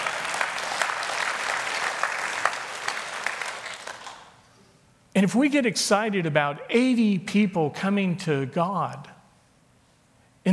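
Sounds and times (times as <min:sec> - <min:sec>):
audience clapping: 0:00.0 - 0:04.5
speech: 0:05.2 - 0:09.1.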